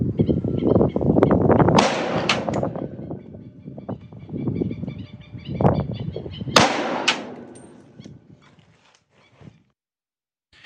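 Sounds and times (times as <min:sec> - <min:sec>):
rough noisy rumbling background: 0:00.1 - 0:03.7, 0:06.3 - 0:08.1
AR-15 rifle firing 5.56 rounds at a pig's ear: 0:01.7 - 0:02.9, 0:06.5 - 0:07.9.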